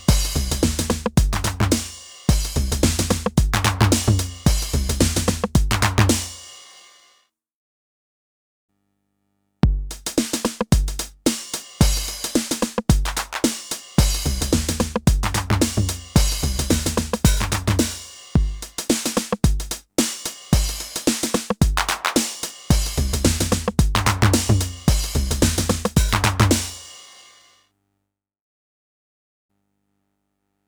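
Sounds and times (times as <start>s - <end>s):
drum machine hits: 0.0s - 6.4s, 9.6s - 26.9s.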